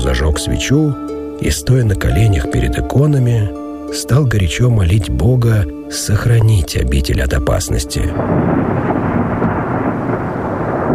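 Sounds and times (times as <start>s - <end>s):
speech: 0.1s - 9.0s
loud rolling thunder from a thunderstorm following lightning: 8.2s - 10.9s.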